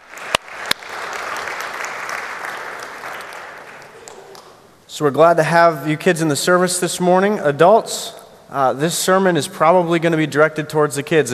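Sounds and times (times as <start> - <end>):
audience applause for the kids: 0.0 - 4.6
speech: 5.0 - 11.3.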